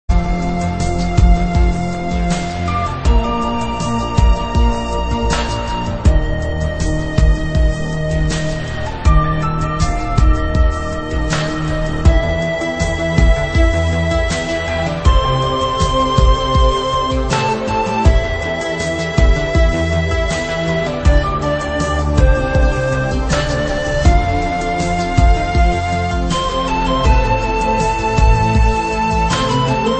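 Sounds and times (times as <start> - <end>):
relaxing ambient music: 0.1 - 29.9.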